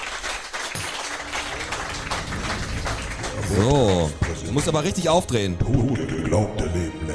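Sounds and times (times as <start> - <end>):
applause: 0.0 - 5.3
speech: 3.5 - 7.0.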